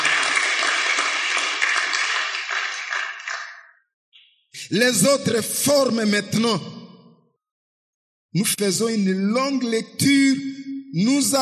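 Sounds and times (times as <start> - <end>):
audience applauding: 0.0 - 3.7
speech: 4.7 - 6.8, 8.4 - 11.3.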